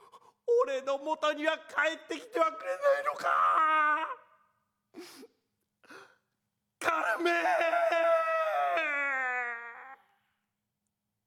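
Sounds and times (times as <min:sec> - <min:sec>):
speech: 0:00.6 - 0:04.2, 0:07.0 - 0:08.0
man sobbing and breaking down in tears: 0:02.6 - 0:04.3, 0:06.8 - 0:10.1.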